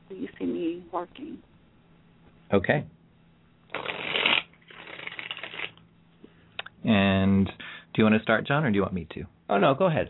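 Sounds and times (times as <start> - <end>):
speech: 0.1 - 1.5, 2.5 - 3.0, 6.8 - 10.0
deck of playing cards shuffling: 3.7 - 5.8.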